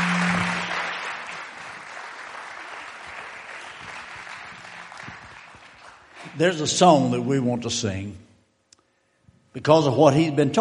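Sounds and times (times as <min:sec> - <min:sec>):
audience applauding: 0:00.0 - 0:07.0
speech: 0:06.4 - 0:08.3, 0:09.6 - 0:10.5.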